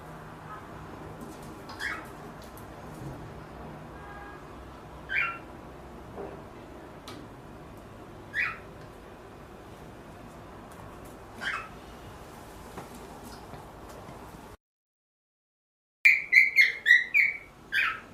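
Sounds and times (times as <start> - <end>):
Pearl cockatiel harsh chirps: 1.7 - 2.1, 5.1 - 5.5, 8.3 - 8.7, 11.4 - 11.8, 16.1 - 18.1.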